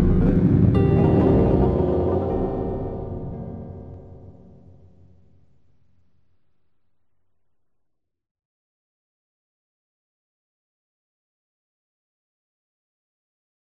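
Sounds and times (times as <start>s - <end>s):
eleven limit pentatonic tubular bells: 0.0s - 4.9s.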